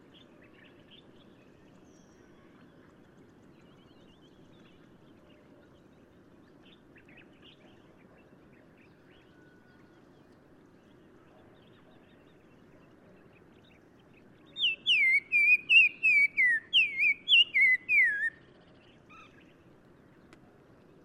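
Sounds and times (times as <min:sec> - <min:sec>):
black-crowned tchagra whistled song in Morocco: 0:14.6 - 0:18.4.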